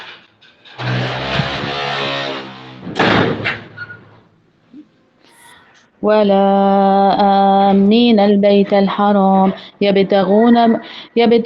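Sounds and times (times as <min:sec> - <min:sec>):
door being shut: 0:00.8 - 0:04.2
speech: 0:06.0 - 0:11.4.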